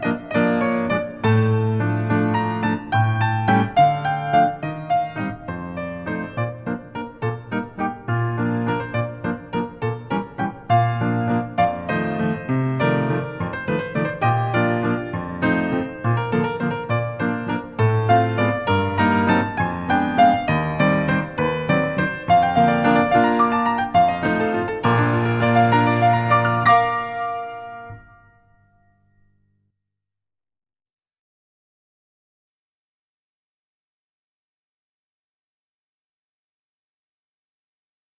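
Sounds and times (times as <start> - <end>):
classical dance music: 0.0 - 29.4.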